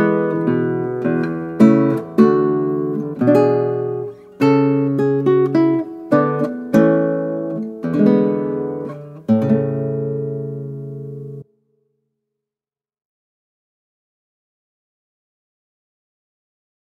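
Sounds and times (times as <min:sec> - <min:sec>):
classical guitar: 0:00.0 - 0:11.6.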